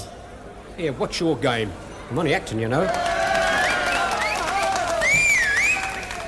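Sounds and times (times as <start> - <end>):
speech: 0.8 - 3.1
audience applause: 2.8 - 6.2.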